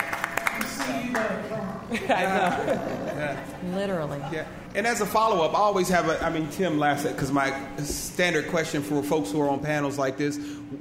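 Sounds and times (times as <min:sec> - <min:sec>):
scattered hand claps: 0:00.0 - 0:01.4
speech: 0:01.1 - 0:10.8
laughter: 0:01.6 - 0:04.6.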